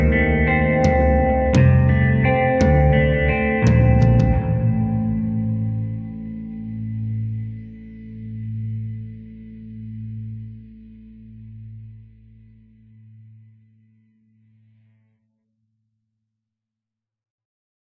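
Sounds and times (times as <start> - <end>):
music in A Locrian mode: 0.0 - 11.6.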